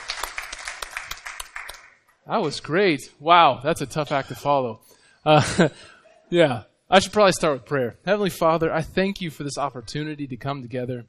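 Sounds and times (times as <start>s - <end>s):
round of applause: 0.0s - 2.1s
speech: 2.3s - 11.0s.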